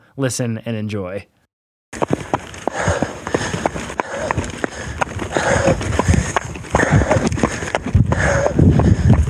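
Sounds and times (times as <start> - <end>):
speech: 0.2 - 1.4
hard shoes clattering in an uneven limping rhythm: 2.0 - 9.2
heavy breathing: 2.6 - 9.2.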